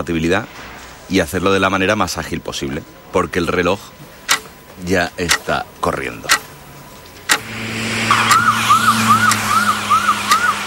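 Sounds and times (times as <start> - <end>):
speech: 0.0 - 4.1, 4.8 - 6.4
ambulance siren: 7.4 - 10.6.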